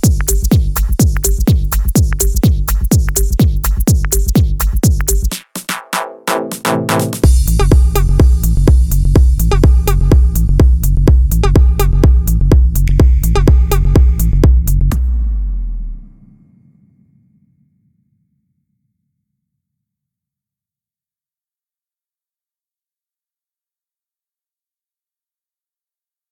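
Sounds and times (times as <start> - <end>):
deep drums: 0.0 - 5.6, 6.5 - 16.2.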